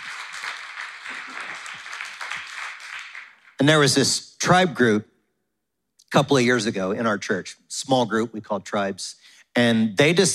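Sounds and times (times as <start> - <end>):
crowd applauding: 0.0 - 3.6
speech: 3.6 - 5.1, 6.1 - 10.3.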